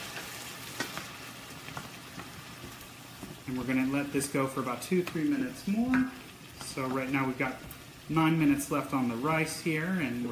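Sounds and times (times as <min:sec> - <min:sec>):
vegetables sizzling in a pan: 0:00.0 - 0:10.3
speech: 0:03.5 - 0:06.2, 0:06.8 - 0:10.3.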